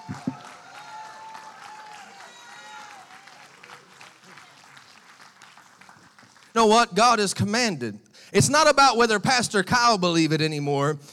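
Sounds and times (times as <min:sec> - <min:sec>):
audience clapping hands in praise: 0:00.0 - 0:07.0
speech: 0:06.6 - 0:11.1.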